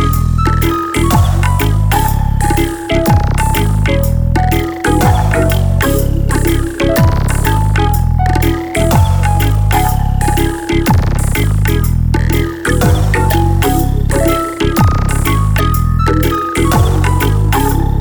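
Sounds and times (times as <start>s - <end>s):
dub music: 0.0s - 17.9s.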